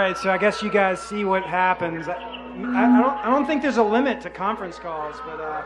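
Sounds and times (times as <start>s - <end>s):
speech: 0.1s - 5.6s
birds chirping: 1.3s - 4.2s.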